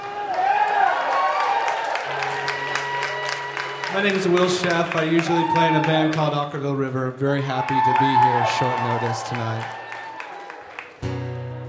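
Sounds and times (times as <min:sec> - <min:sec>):
sparse scattered clapping from a small audience: 0:00.0 - 0:06.4, 0:07.6 - 0:11.2
speech: 0:03.9 - 0:09.8.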